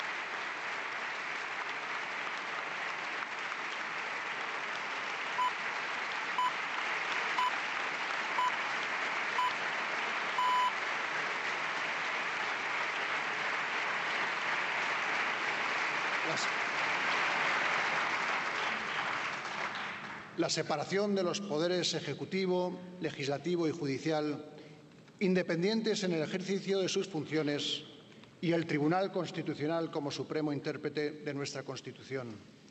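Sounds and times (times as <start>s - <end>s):
applause in parliament chamber: 0.0s - 21.3s
speech: 20.4s - 24.6s, 25.2s - 32.6s.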